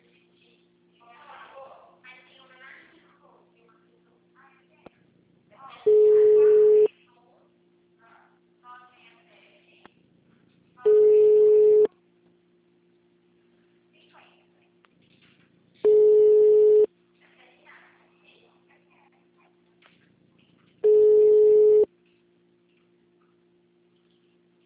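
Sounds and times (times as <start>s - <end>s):
telephone line tone beeps while a call is placed: 5.9s - 6.9s, 10.9s - 11.9s, 15.9s - 16.9s, 20.8s - 21.9s.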